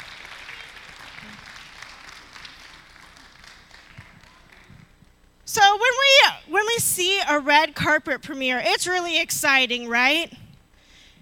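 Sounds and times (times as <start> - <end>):
audience applause: 0.0 - 4.9
speech: 5.5 - 10.4.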